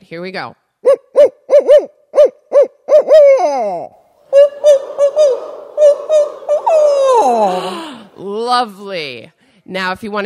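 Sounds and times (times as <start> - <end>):
speech: 0.1 - 1.0, 3.4 - 4.0, 5.2 - 10.2
people imitating barred owl hoots, call-and-response: 0.8 - 8.3.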